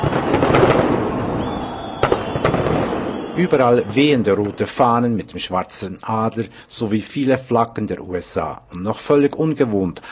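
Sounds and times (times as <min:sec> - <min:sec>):
huge fireworks display at celebration: 0:00.0 - 0:05.0
speech: 0:03.4 - 0:10.1.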